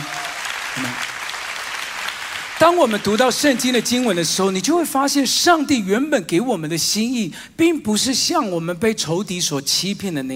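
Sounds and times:
audience applause: 0.0s - 4.6s
speech: 0.8s - 1.1s, 2.6s - 10.3s.

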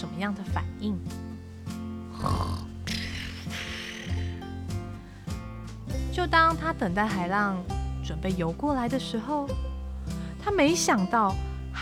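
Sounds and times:
soft music: 0.0s - 11.7s
speech: 0.2s - 1.2s, 6.2s - 9.7s, 10.5s - 11.7s
person imitating snoring: 2.1s - 4.6s.

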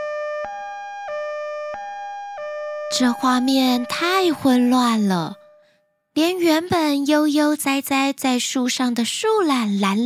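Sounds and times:
ambulance siren wailing: 0.0s - 5.7s
speech: 2.9s - 5.4s, 6.2s - 10.0s.

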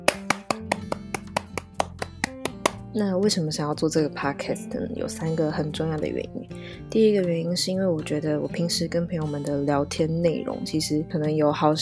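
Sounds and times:
hands clapping: 0.0s - 2.8s
speech: 2.9s - 11.7s.

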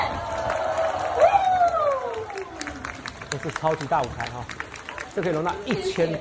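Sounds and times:
crowd screaming and cheering: 0.0s - 3.5s
speech: 3.4s - 6.1s.

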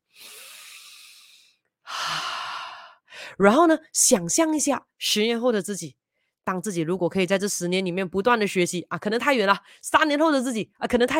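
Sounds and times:
deep breath: 0.1s - 3.4s
speech: 3.4s - 11.1s.

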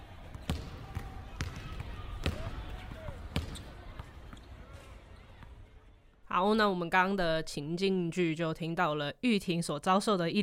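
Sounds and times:
basketball bouncing on court: 0.2s - 4.5s
speech: 6.4s - 10.4s.

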